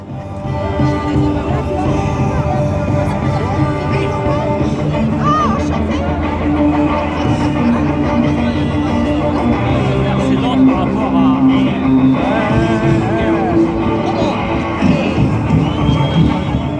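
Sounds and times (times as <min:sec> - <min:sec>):
loud rock protest song blaring from a union sound truck: 0:00.0 - 0:16.7
noisy crowd: 0:00.0 - 0:16.7.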